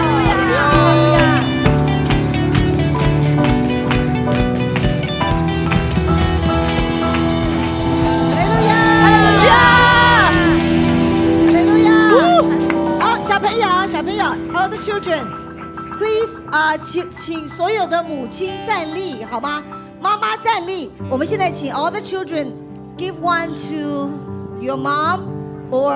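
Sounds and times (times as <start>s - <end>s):
whoops and shouts: 0.0s - 1.6s, 8.3s - 10.8s
audience clapping and cheering: 0.0s - 13.0s
steady sustained music: 0.0s - 25.9s
speech: 18.0s - 19.7s, 20.5s - 25.9s.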